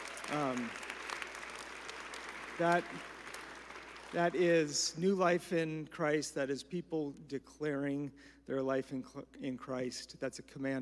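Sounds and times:
audience applause: 0.0s - 4.7s
speech: 0.3s - 0.9s, 2.6s - 3.1s, 4.1s - 10.7s.

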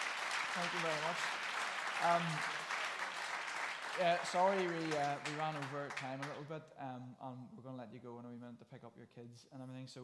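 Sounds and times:
audience applause: 0.0s - 6.4s
speech: 0.6s - 2.6s, 4.0s - 10.0s.

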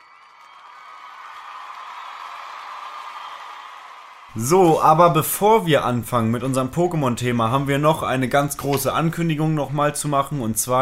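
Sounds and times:
applause sound effect of crowd clapping: 0.0s - 4.4s
speech: 4.3s - 10.8s.

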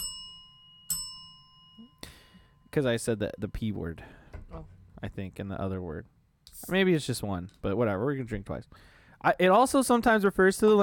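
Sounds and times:
bell dings: 0.0s - 3.6s
speech: 2.8s - 10.8s.

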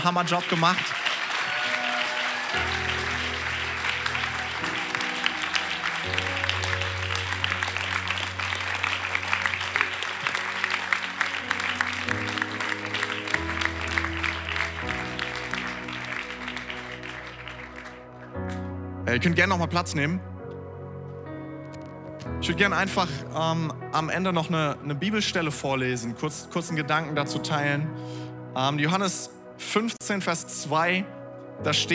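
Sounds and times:
speech: 0.0s - 1.0s, 19.1s - 20.3s, 22.4s - 31.9s
crowd clapping: 0.0s - 18.8s.

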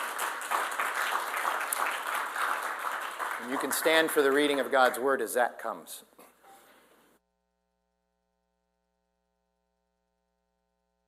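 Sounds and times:
audience applause: 0.0s - 5.4s
speech: 3.4s - 6.2s.

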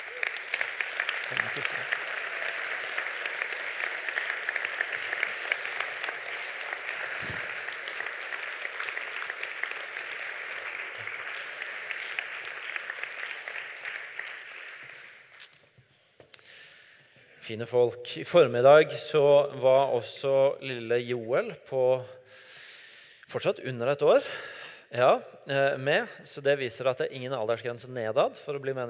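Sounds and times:
audience applause: 0.0s - 15.4s
speech: 17.5s - 22.2s, 23.3s - 28.8s.

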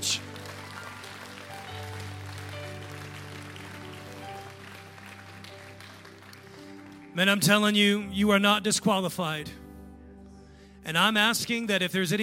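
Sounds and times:
church congregation clapping: 0.0s - 7.8s
speech: 7.2s - 9.6s, 10.9s - 12.2s.

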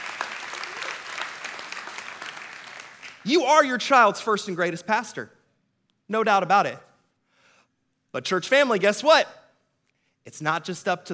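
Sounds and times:
church congregation applauding parents and guardians: 0.0s - 3.4s
speech: 3.2s - 5.4s, 6.1s - 6.9s, 8.1s - 9.4s, 10.2s - 11.1s.

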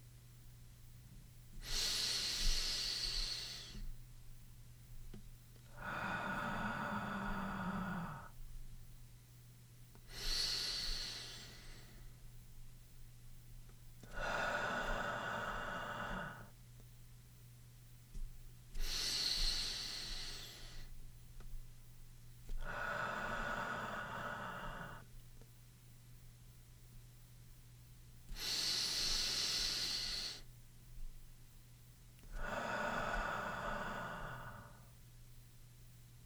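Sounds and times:
slow guided breathing: 1.6s - 4.0s, 5.7s - 8.4s, 10.0s - 12.2s, 14.0s - 16.6s, 18.8s - 21.0s, 22.5s - 25.1s, 28.3s - 30.5s, 32.2s - 35.0s.

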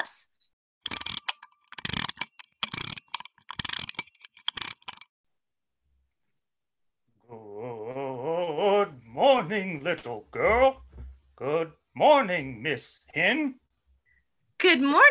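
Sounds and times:
clockwork key being wound: 0.8s - 5.1s
speech: 9.4s - 10.8s, 11.4s - 13.6s, 14.6s - 15.0s.

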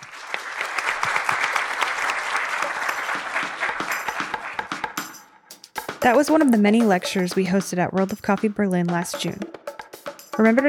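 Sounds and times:
audience applause after a lecture: 0.0s - 5.2s
speech: 6.0s - 9.6s, 10.4s - 10.6s.

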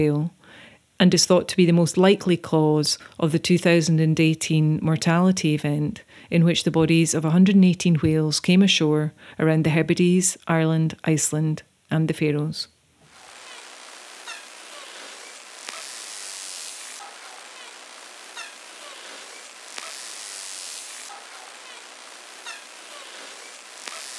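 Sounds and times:
speech: 0.0s - 0.4s, 1.0s - 12.7s
dolphin buzzes: 13.1s - 24.1s
faint high chirps: 13.1s - 24.1s
underwater noise: 13.1s - 24.1s.

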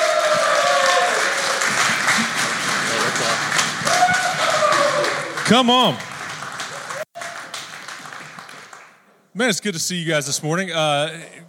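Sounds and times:
audience applause: 0.0s - 9.0s
speech: 5.5s - 6.1s, 9.4s - 11.4s.

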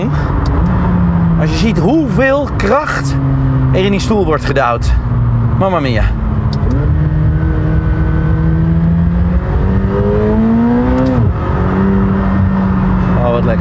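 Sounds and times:
car accelerating hard with wheelspin and gear changes: 0.0s - 13.5s
speech: 1.4s - 6.2s.

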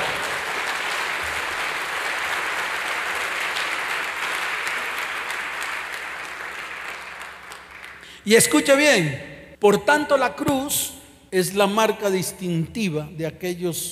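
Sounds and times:
audience applause in a large room: 0.0s - 8.2s
speech: 8.2s - 13.8s.

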